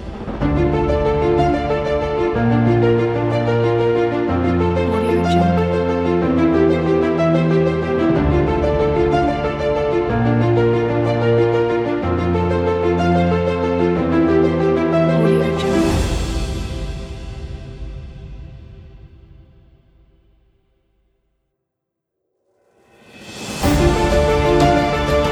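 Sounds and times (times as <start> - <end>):
inspiring and uplifting piano: 0.0 - 17.2, 23.6 - 25.3.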